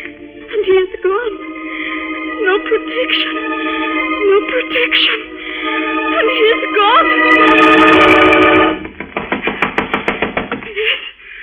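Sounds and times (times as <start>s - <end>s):
dense sustained musical tone: 0.0s - 9.0s
speech: 2.8s - 3.8s, 4.4s - 5.3s
sharp knocks on a door: 8.8s - 10.7s.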